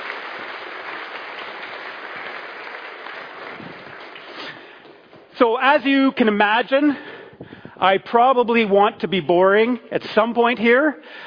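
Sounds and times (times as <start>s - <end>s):
audience applause: 0.0s - 5.1s
speech: 5.4s - 7.1s, 7.8s - 11.2s.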